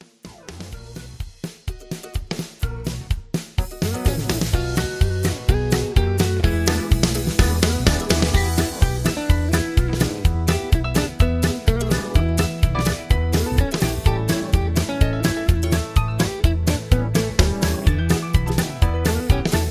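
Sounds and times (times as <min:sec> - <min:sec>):
instrumental music: 0:00.0 - 0:19.6.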